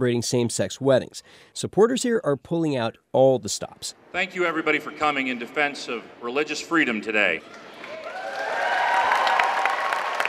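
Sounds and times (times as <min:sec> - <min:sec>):
speech: 0:00.0 - 0:07.7
crowd applauding in rotunda: 0:07.4 - 0:10.2
whoops and cheers: 0:07.8 - 0:10.2.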